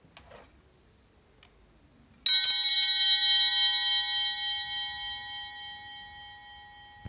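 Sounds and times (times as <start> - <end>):
altar bell with cast handle ringing: 2.3 - 7.0.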